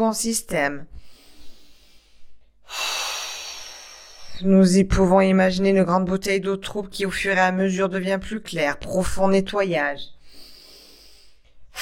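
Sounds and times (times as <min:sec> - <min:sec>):
speech: 0:00.0 - 0:01.1, 0:04.4 - 0:10.2
long breathy exhale during a French guided relaxation exercise: 0:01.1 - 0:04.4.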